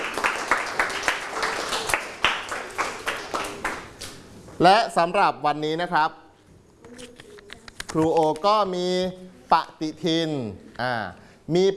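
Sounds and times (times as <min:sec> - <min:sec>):
students clapping: 0:00.0 - 0:04.2
speech: 0:04.6 - 0:06.2, 0:07.9 - 0:11.7.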